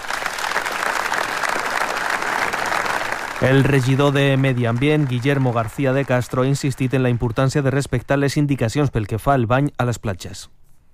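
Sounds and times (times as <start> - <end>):
long applause: 0.0 - 7.9
speech: 3.4 - 10.6.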